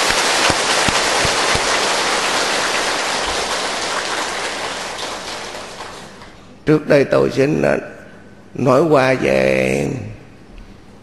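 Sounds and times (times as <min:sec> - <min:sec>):
large crowd applause: 0:00.0 - 0:06.4
speech: 0:06.7 - 0:10.1.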